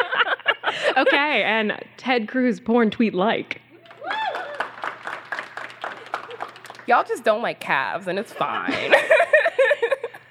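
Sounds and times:
laughter: 0.0s - 1.4s, 8.2s - 10.2s
speech: 1.0s - 3.6s, 6.9s - 9.3s
sparse, hesitant audience clapping: 3.8s - 7.2s.

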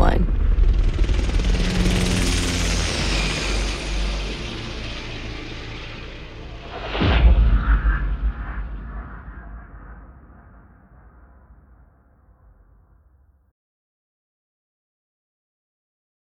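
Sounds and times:
minor earthquake rumble: 0.0s - 5.2s, 6.3s - 12.9s.

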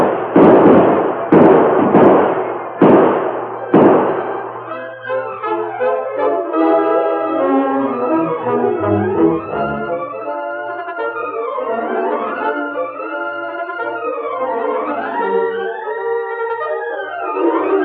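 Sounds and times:
gunshot blasts from a radio drama shootout: 0.0s - 4.4s
tonal music: 3.6s - 17.8s.

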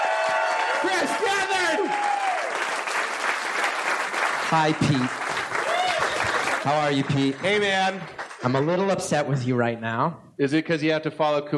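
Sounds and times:
audience applause: 0.0s - 9.1s
speech: 0.3s - 1.4s, 4.5s - 5.2s, 6.6s - 11.5s.

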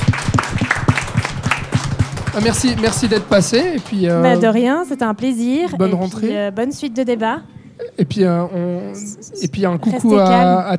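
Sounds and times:
applause: 0.0s - 4.3s
speech: 2.4s - 10.7s.

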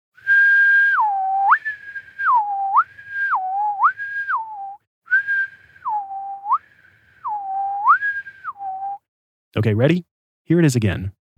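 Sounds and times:
person whistling a tone: 0.2s - 9.1s
speech: 9.6s - 11.2s.

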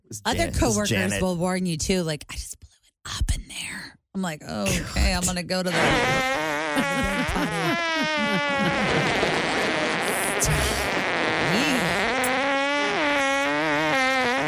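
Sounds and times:
speech: 0.1s - 2.6s, 4.2s - 9.8s, 10.4s - 10.7s
laughter: 0.3s - 1.2s, 4.7s - 10.8s
fart: 5.7s - 14.4s.

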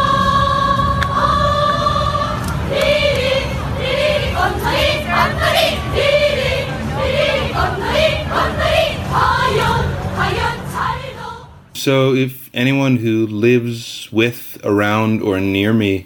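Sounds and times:
North Korean cheer squad chanting and singing in unison at the games: 0.0s - 12.0s
speech: 11.8s - 16.0s.

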